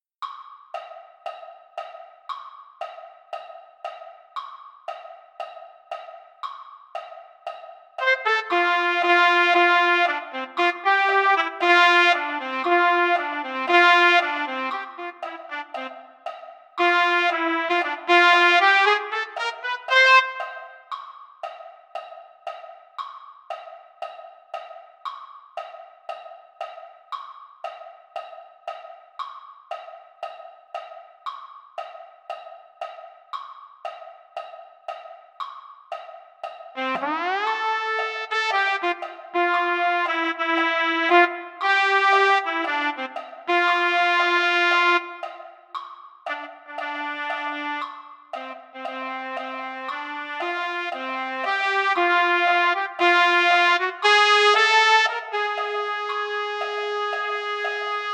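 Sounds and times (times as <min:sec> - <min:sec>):
trumpet: 0:08.0 - 0:16.2, 0:16.8 - 0:20.9, 0:36.8 - 0:45.4, 0:46.3 - 0:58.1.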